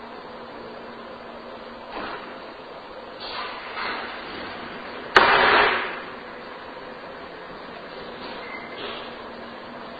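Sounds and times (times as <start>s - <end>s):
loud bang in room with fireplace: 5.1s - 6.1s.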